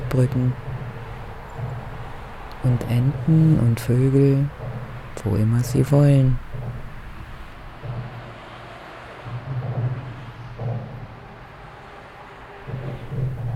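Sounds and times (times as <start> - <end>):
drumming rumble of motorway traffic overhead: 0.0 - 13.5
speech: 0.1 - 0.6, 2.6 - 4.6, 5.2 - 6.4.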